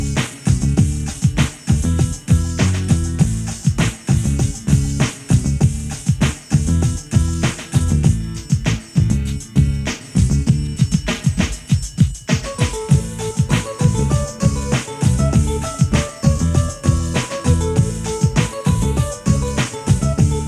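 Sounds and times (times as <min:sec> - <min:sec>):
guitar beats: 0:00.0 - 0:20.4.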